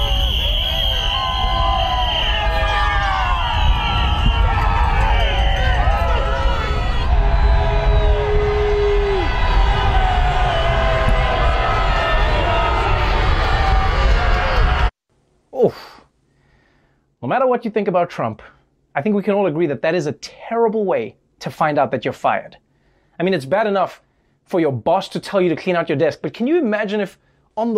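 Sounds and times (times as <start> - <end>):
whistles: 0.0 - 11.2
street crowd cheering: 0.0 - 14.9
speech: 17.4 - 22.6, 23.2 - 27.7.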